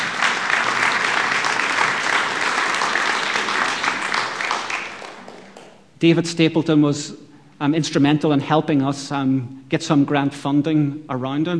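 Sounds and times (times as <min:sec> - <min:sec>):
audience applause: 0:00.0 - 0:05.8
speech: 0:06.0 - 0:11.5.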